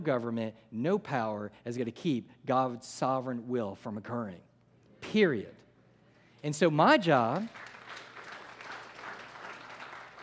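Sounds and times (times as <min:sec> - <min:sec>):
speech: 0:00.0 - 0:05.6, 0:06.4 - 0:07.7
church congregation clapping during a sermon: 0:07.0 - 0:10.2.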